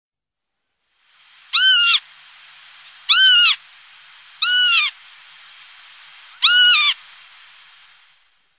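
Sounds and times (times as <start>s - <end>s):
harsh bird calls: 1.5s - 2.1s, 2.9s - 3.6s, 4.2s - 5.0s, 5.6s - 7.7s.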